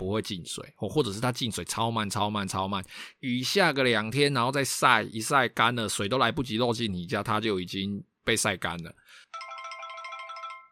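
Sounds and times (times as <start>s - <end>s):
speech: 0.1s - 9.5s
phone ringtone: 9.3s - 10.7s.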